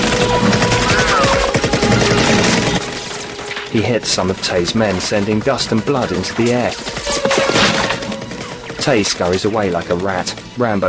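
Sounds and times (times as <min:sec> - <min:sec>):
automatic gunfire in a Rambo film riverside firefight: 0:00.0 - 0:03.4, 0:06.8 - 0:10.3
speech: 0:03.8 - 0:07.6, 0:08.8 - 0:10.8.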